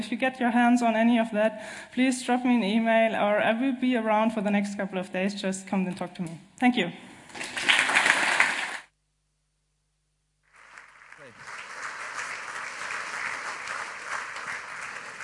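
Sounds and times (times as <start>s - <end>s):
speech: 0.0s - 7.7s
audience clapping after a talk: 7.4s - 8.9s, 10.5s - 15.2s.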